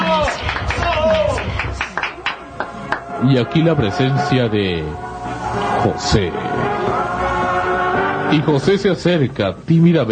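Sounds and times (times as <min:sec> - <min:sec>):
audience applause: 0:00.0 - 0:03.2
crowd voices and chatter: 0:00.0 - 0:09.7
speech: 0:03.2 - 0:07.3, 0:08.3 - 0:10.1.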